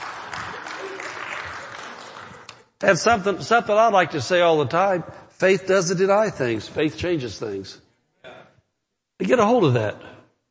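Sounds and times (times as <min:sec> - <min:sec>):
clapping: 0:00.0 - 0:02.7
speech: 0:02.8 - 0:07.8, 0:09.2 - 0:10.1.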